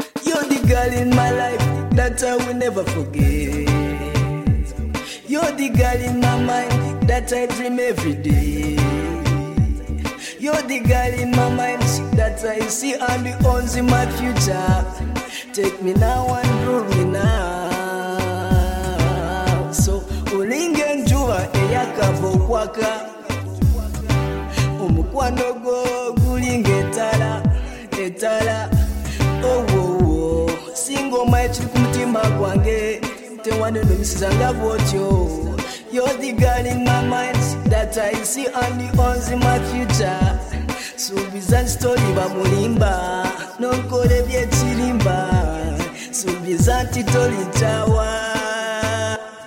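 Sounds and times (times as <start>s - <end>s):
a cappella singing: 0.3s - 49.4s.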